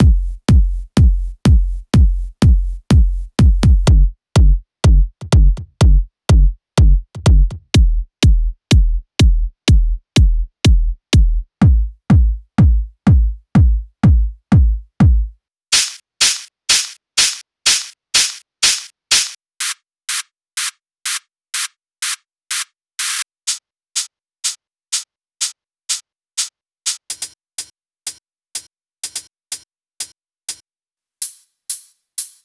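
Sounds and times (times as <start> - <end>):
tech house music: 0.0 - 19.4.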